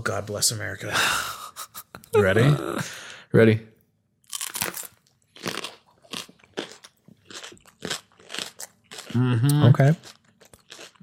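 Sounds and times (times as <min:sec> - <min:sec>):
speech: 0:00.0 - 0:01.4, 0:02.1 - 0:03.7, 0:09.2 - 0:10.2
crunchy bite into food: 0:04.3 - 0:11.0.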